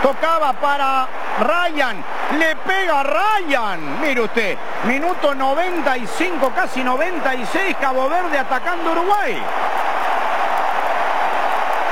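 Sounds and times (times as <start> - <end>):
speech: 0.0 - 9.8
Cape Verdean crowd roaring at a football match against Uruguay: 0.0 - 11.9.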